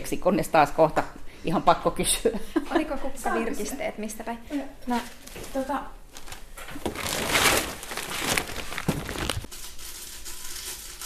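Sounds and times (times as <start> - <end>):
speech: 0.1 - 6.0
packaging crinkling while packing online store orders into parcels: 6.1 - 9.5.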